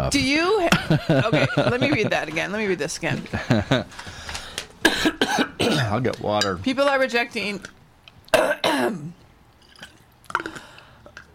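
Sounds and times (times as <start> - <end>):
speech: 0.1 - 4.2, 5.0 - 7.8, 8.4 - 9.2
laughter: 0.6 - 2.4, 3.2 - 4.0
harsh coughs: 4.8 - 6.0, 8.3 - 9.2.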